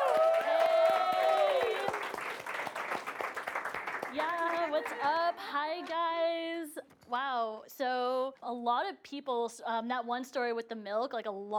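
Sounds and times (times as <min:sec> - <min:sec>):
audience applause welcoming a speaker at a live talk event: 0:00.0 - 0:05.5
speech: 0:04.8 - 0:11.5.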